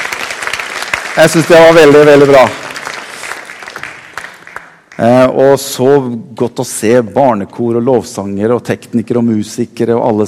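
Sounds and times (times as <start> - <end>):
audience applause: 0.0 - 5.1
speech: 1.2 - 2.7, 5.0 - 10.2.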